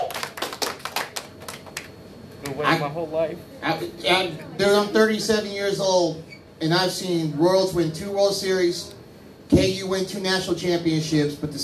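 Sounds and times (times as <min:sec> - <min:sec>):
hand clapping: 0:00.0 - 0:02.0
speech: 0:02.5 - 0:11.6.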